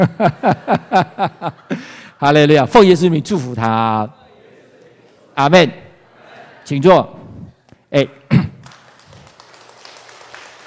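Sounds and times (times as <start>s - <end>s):
laughter: 0.0s - 2.0s, 6.0s - 7.4s
speech: 0.0s - 4.2s, 5.4s - 5.8s, 6.7s - 7.2s, 7.9s - 8.2s
church congregation clapping: 8.6s - 10.6s.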